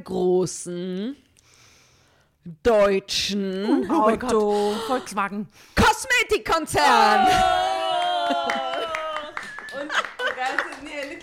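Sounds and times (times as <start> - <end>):
speech: 0.0 - 1.3, 2.4 - 7.7, 8.3 - 8.7
hand claps: 8.0 - 11.2.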